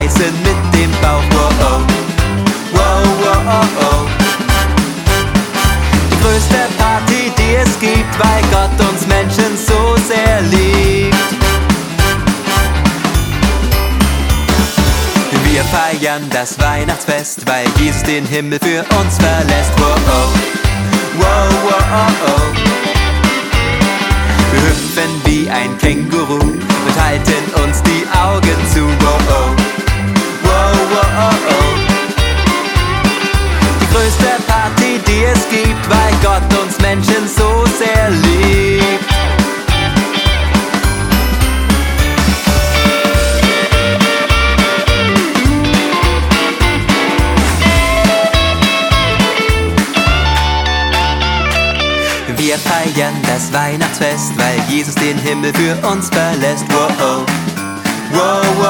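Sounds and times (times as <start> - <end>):
Christmas party rock and roll music: 0.0 - 58.6.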